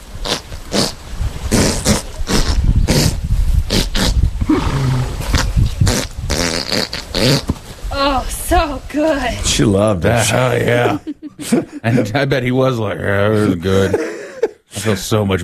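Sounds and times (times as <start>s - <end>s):
horse passing gas: 0.2s - 7.9s
speech: 7.2s - 7.5s, 9.0s - 14.1s, 14.8s - 15.4s
laughter: 10.0s - 12.6s, 13.2s - 15.1s.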